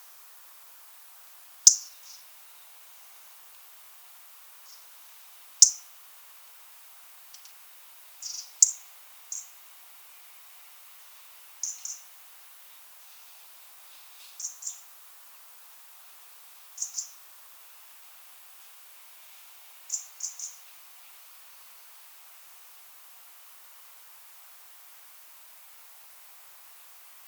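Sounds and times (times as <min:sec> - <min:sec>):
steady hiss: 0:00.0 - 0:27.2
European robin ticking calls: 0:01.7 - 0:02.3, 0:05.6 - 0:05.9, 0:08.2 - 0:09.6, 0:11.6 - 0:12.1, 0:14.4 - 0:14.8, 0:16.8 - 0:17.2, 0:19.9 - 0:20.6.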